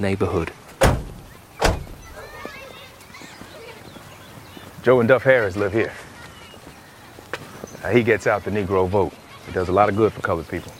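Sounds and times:
speech: 0.0 - 0.6, 4.8 - 6.0, 7.8 - 10.7
low noise: 0.0 - 10.7
car door opening: 0.8 - 2.2.

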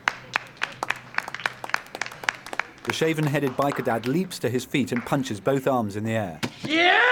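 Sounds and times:
audience applause: 0.0 - 5.4
speech: 2.9 - 7.0.

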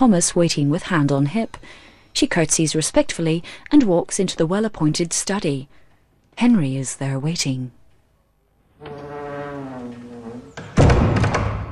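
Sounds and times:
speech: 0.0 - 5.8, 6.4 - 7.8, 8.8 - 9.1
door closing: 8.8 - 11.7.

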